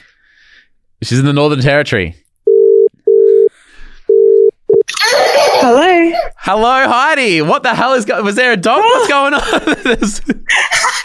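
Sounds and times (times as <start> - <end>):
speech: 1.0 - 2.2, 5.6 - 11.0
phone ringback tone: 2.5 - 3.5, 4.1 - 4.8.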